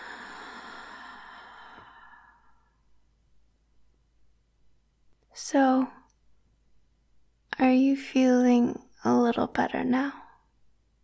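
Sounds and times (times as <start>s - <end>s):
slow deep breath in and out: 0.0s - 2.9s
speech: 5.4s - 6.0s, 7.6s - 10.2s.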